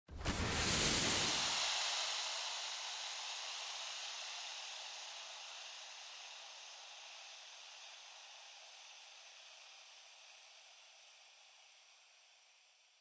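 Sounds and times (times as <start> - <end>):
smoke emitting: 0.1 - 6.3.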